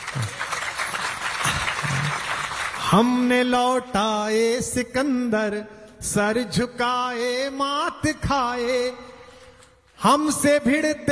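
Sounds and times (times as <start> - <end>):
audience clapping: 0.0 - 3.5
speech: 2.9 - 9.1, 10.0 - 11.0.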